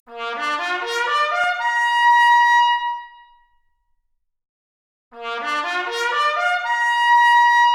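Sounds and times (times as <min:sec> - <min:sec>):
trumpet arpeggio: 0:00.2 - 0:01.9, 0:05.2 - 0:07.6.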